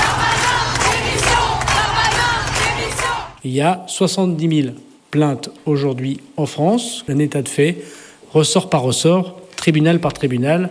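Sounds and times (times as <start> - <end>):
protest crowd shouting for resignation: 0.0 - 3.4
speech: 3.4 - 10.6.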